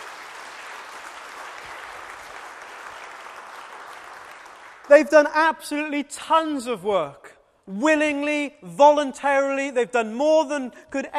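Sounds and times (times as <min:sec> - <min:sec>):
crowd applause: 0:00.0 - 0:05.1
speech: 0:04.9 - 0:11.1.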